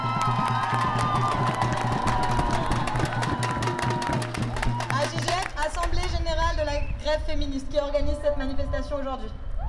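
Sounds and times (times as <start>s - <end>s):
cheering voices: 0.0s - 5.1s
crowd clapping at a demonstration: 0.0s - 6.2s
speech: 7.1s - 9.5s.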